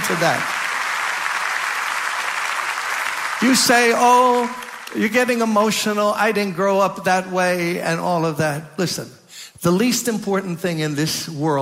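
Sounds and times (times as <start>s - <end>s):
audience clapping: 0.0s - 5.6s
speech: 0.1s - 0.5s, 3.4s - 11.5s.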